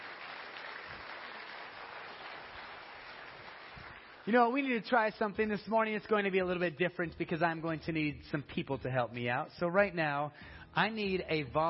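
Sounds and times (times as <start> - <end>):
people clapping their hands: 0.0 - 4.7
speech: 4.2 - 11.6.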